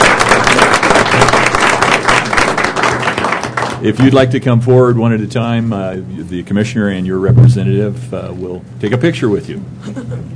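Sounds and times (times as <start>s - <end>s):
audience applause: 0.0s - 4.2s
speech: 3.8s - 10.3s.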